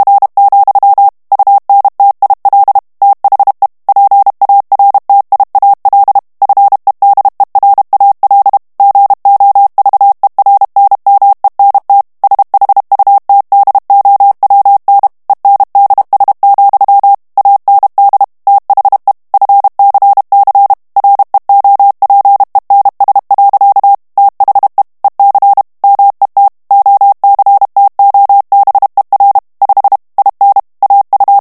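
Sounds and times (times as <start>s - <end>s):
morse code of English plain text at 30 words per minute: 0.0s - 31.3s.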